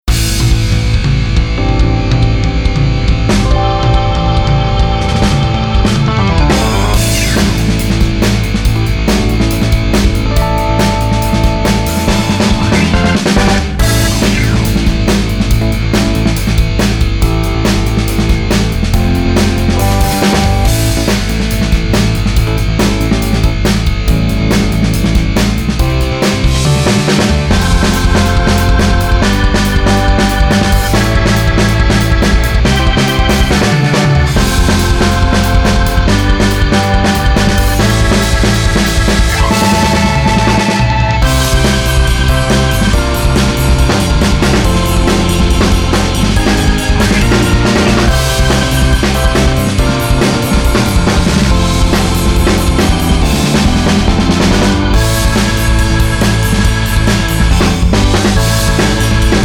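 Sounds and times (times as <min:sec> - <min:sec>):
rock music: 0:00.0 - 0:59.4.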